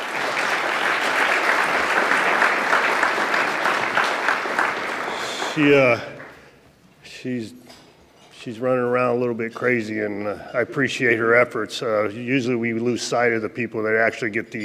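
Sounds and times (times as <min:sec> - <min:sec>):
audience applause: 0:00.0 - 0:06.4
speech: 0:05.6 - 0:06.1, 0:07.2 - 0:07.6, 0:08.4 - 0:14.6.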